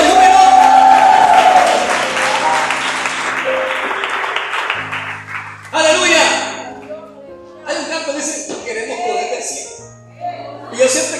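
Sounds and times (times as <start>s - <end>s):
audience applause: 0.0s - 6.0s
low chord: 0.0s - 7.7s
sustained instrumental tone: 1.5s - 7.7s.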